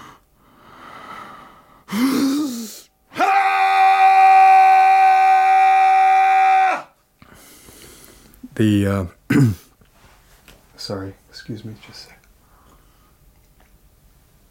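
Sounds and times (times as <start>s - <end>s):
man's primal scream: 2.4s - 7.0s
speech: 8.6s - 9.6s, 10.9s - 12.2s.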